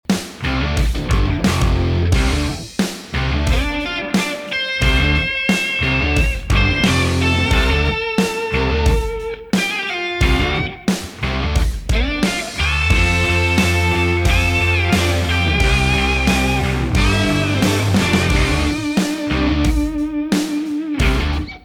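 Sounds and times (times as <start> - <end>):
rock music: 0.0 - 21.6.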